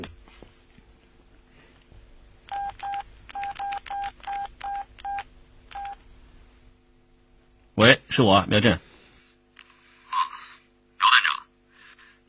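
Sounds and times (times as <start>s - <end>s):
faint hum: 0.0s - 12.2s
telephone keypad beeps dialing a number: 2.5s - 6.0s
speech: 7.8s - 8.9s.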